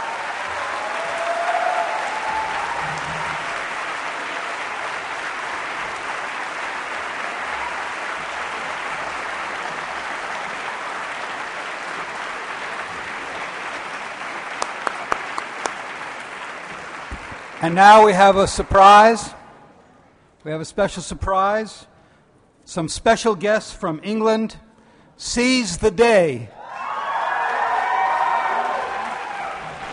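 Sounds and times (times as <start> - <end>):
audience applause: 0.0 - 18.2, 26.6 - 29.9
speech: 17.6 - 19.4, 20.4 - 21.9, 22.7 - 24.6, 25.2 - 26.6.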